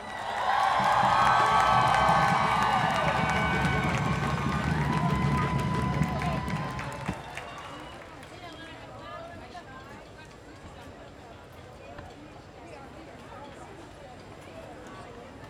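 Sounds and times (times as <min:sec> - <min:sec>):
crowd whooping and shouting at an International Women's Day feminist march: 0:00.0 - 0:08.0
audience clapping at an International Women's Day feminist march: 0:00.0 - 0:08.4.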